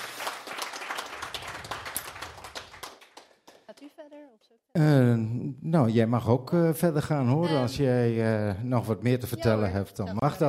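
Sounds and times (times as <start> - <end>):
audience applause: 0.0 - 4.0
speech: 4.6 - 10.4.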